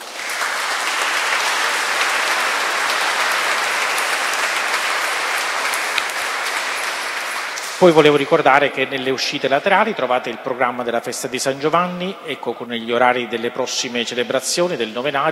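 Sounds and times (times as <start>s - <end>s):
audience applause: 0.0s - 8.6s
speech: 7.8s - 15.3s.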